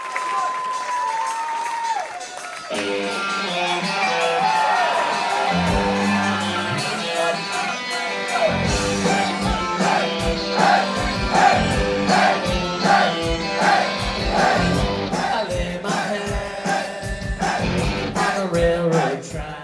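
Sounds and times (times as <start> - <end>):
concert crowd cheering and shouting: 0.0 - 18.5
live band performance: 2.4 - 19.5
pounding drums: 8.7 - 19.6.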